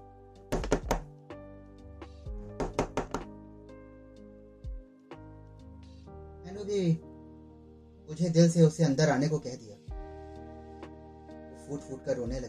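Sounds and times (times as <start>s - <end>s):
knocking on a door: 0.5s - 1.1s, 2.6s - 3.3s
speech: 6.5s - 7.1s, 8.1s - 9.9s, 11.7s - 12.4s.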